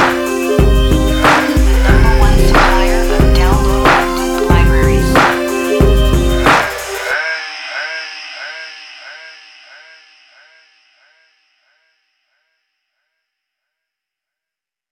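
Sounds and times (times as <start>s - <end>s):
synth loops: 0.0s - 7.2s.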